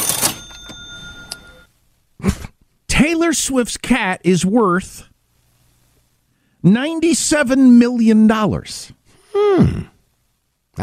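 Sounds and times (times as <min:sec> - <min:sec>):
cash register cha-ching sound effect: 0:00.0 - 0:01.6
speech: 0:03.0 - 0:05.1, 0:06.6 - 0:09.9.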